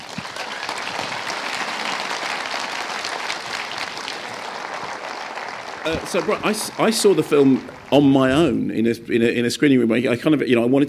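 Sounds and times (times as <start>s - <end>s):
audience applause: 0.0s - 8.7s
speech: 5.8s - 10.8s.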